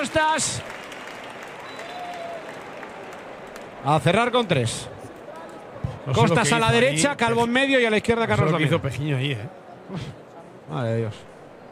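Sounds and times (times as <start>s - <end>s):
speech: 0.0s - 0.9s, 3.8s - 5.0s, 6.0s - 11.3s
stadium crowd at an Oviedo football match applauding a substituted player: 0.0s - 5.8s
whistle: 1.6s - 2.6s.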